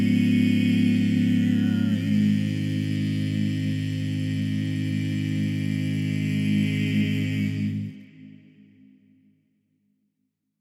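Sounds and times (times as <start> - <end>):
tenor voice: 0.0 - 7.9.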